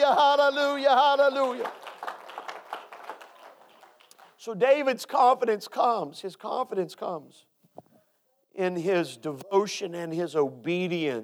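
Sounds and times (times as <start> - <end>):
speech: 0.1 - 1.8, 4.4 - 7.5, 8.6 - 11.2
audience clapping hands: 1.0 - 4.4.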